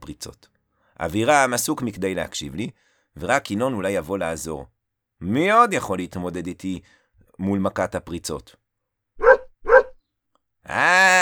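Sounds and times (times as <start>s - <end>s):
speech: 0.1s - 8.6s, 10.6s - 11.1s
dog barking: 9.2s - 9.9s.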